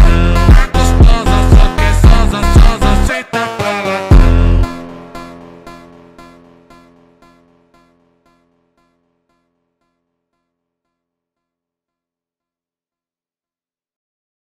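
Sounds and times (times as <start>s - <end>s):
slowed montagem music: 0.0s - 9.0s.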